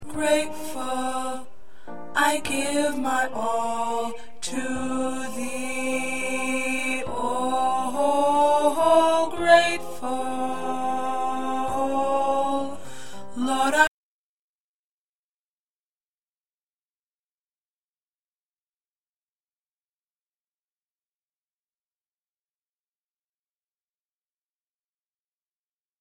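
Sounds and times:
alto choir singing: 0:00.0 - 0:13.9.

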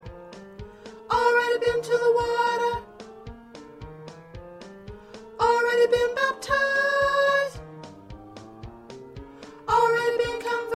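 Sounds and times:
soprano singing: 0:00.9 - 0:03.4, 0:04.8 - 0:10.7.

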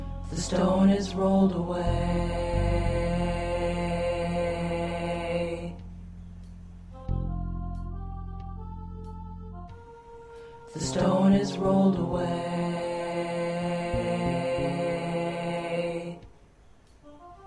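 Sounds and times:
first tenor voice singing: 0:00.2 - 0:05.9, 0:10.6 - 0:16.4.

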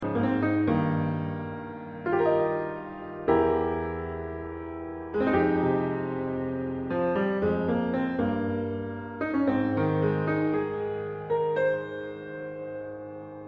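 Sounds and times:
piano: 0:00.0 - 0:13.4.

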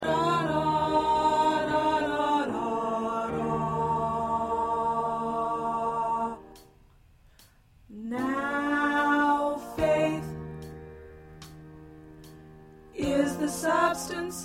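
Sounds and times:
alto choir singing: 0:00.0 - 0:06.8, 0:08.1 - 0:10.6, 0:13.0 - 0:14.4.

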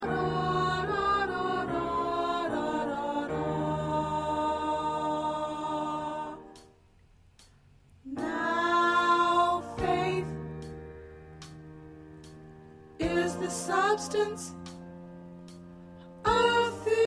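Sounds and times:
soprano singing: 0:00.0 - 0:06.6, 0:08.1 - 0:10.6, 0:13.0 - 0:14.7, 0:16.2 - 0:17.0.

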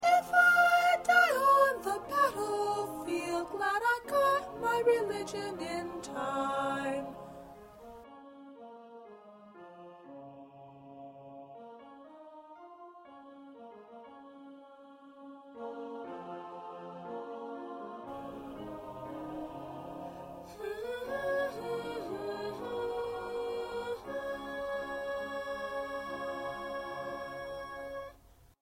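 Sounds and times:
first soprano singing: 0:00.0 - 0:08.0, 0:14.8 - 0:28.2.

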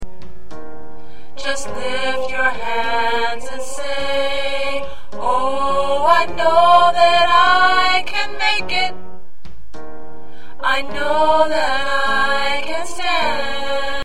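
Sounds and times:
soprano singing: 0:01.4 - 0:09.0, 0:10.6 - 0:14.0.

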